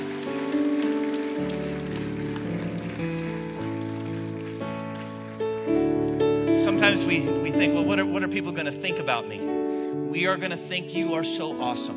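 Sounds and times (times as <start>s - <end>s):
crowd clapping: 0.0s - 8.1s
sustained keyboard or organ chords: 0.0s - 11.9s
speech: 6.8s - 11.9s.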